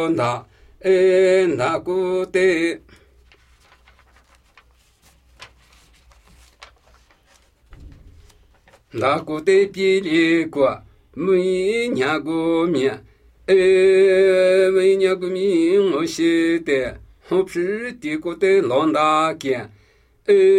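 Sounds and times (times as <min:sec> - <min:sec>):
Namuyi Tibetan ritual chanting: 0:00.0 - 0:03.0, 0:08.9 - 0:20.5.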